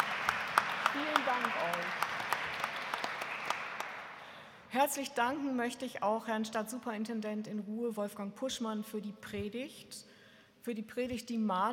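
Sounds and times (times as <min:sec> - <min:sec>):
crowd applauding in a church: 0:00.0 - 0:04.4
speech: 0:01.0 - 0:02.0, 0:04.7 - 0:11.7.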